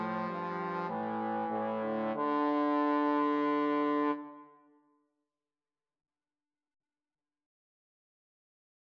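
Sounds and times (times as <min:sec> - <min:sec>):
trombone duet playing an aria: 0:00.0 - 0:04.2.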